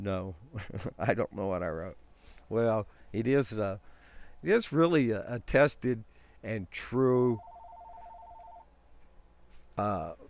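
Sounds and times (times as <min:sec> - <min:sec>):
speech: 0:00.0 - 0:07.5, 0:09.8 - 0:10.2
telephone ringing with an incoming call: 0:07.3 - 0:08.7.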